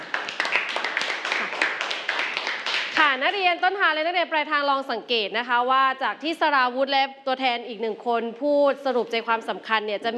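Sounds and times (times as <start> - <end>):
group clapping: 0.0 - 3.4
speech: 3.2 - 10.1.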